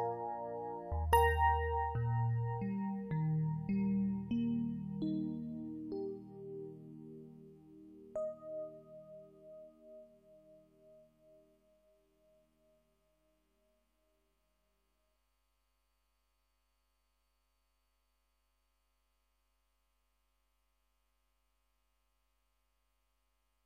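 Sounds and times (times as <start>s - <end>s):
electric piano: 0.0s - 11.5s.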